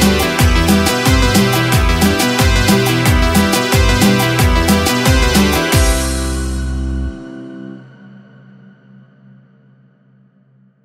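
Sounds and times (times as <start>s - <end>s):
cumbia music: 0.0s - 7.8s.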